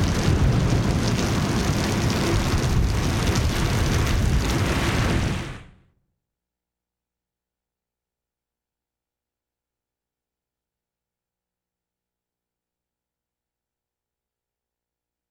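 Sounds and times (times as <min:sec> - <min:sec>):
storm in Japan: 0:00.0 - 0:05.8.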